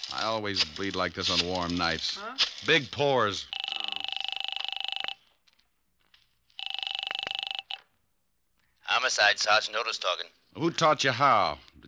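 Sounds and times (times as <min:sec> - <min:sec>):
speech: 0:00.0 - 0:03.6, 0:09.1 - 0:11.8
telephone bell ringing: 0:03.5 - 0:05.3, 0:06.6 - 0:08.0.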